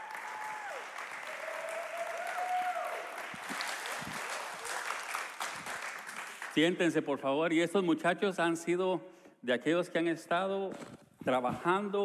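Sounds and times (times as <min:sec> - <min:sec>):
scattered cheers and whistles: 0:00.0 - 0:03.3
audience applauding: 0:00.0 - 0:06.6
speech: 0:06.6 - 0:12.0.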